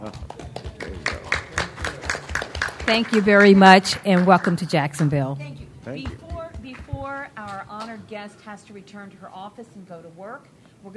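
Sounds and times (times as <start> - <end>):
audience applause: 0.0 - 5.2
speech: 2.9 - 6.2, 7.6 - 10.9.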